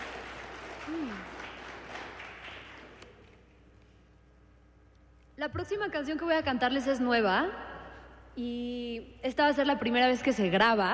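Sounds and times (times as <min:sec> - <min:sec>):
crowd applauding: 0:00.0 - 0:03.2
speech: 0:00.9 - 0:01.5, 0:05.4 - 0:07.8, 0:08.4 - 0:10.9.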